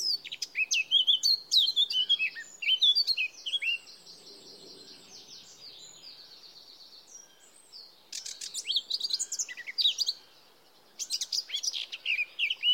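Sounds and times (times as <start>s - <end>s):
Eurasian blackcap Sylvia atricapilla: 0.0s - 3.8s, 7.1s - 10.3s, 11.0s - 12.7s.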